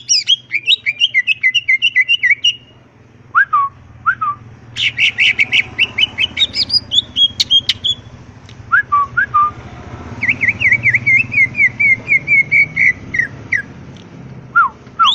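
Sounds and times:
greater green leafbird song: 0.0 - 2.7, 3.4 - 8.1, 8.7 - 9.6, 10.2 - 13.8, 14.5 - 15.1.

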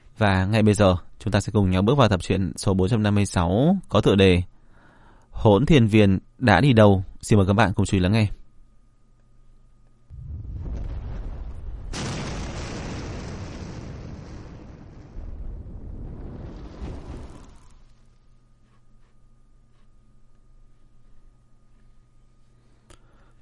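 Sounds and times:
speech: 0.2 - 4.5, 5.4 - 8.4
explosion sound effect: 10.1 - 18.1.

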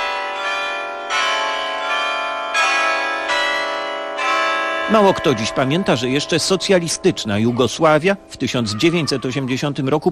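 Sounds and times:
church bell of Saint Sava Cathedral in Belgrade tolling the hour: 0.0 - 10.1
speech: 4.9 - 10.1.

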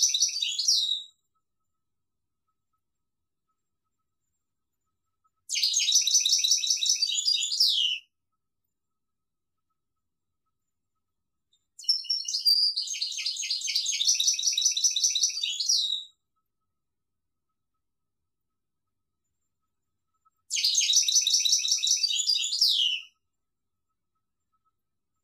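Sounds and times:
European goldfinch singing: 0.0 - 1.1, 5.5 - 8.1, 11.8 - 16.1, 20.5 - 23.2.

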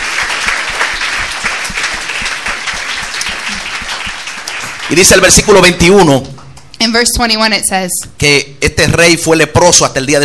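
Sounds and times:
church congregation applauding: 0.0 - 6.4
speech: 4.9 - 6.3, 6.9 - 10.2.

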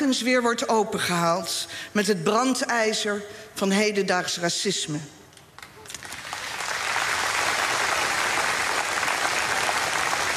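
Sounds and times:
speech: 0.0 - 5.2
audience applause at the national commemoration of the slavery past: 5.9 - 10.3.

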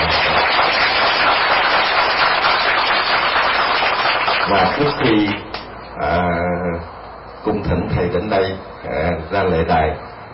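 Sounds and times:
audience applause: 0.0 - 5.4
speech: 4.6 - 10.1.

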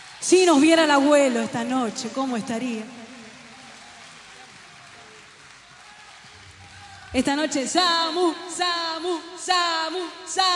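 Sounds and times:
speech: 0.2 - 3.0, 7.1 - 10.5
audience applause: 2.2 - 7.6
audience cheering: 3.0 - 7.6.

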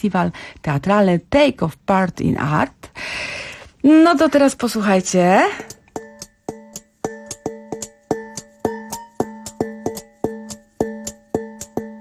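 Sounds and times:
speech: 0.0 - 5.8
drinking glasses, spoons and pots played as instruments: 5.6 - 11.9.

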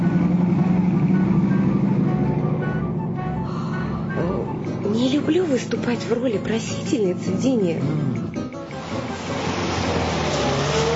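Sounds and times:
car driving and pulling up: 0.0 - 10.9
speech: 5.1 - 8.2.

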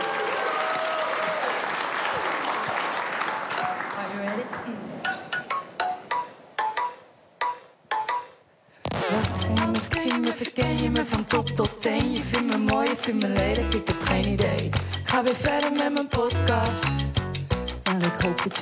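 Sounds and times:
audience applause on a radio show: 0.0 - 4.8
music: 5.4 - 18.6
speech: 9.4 - 17.2, 18.1 - 18.6.

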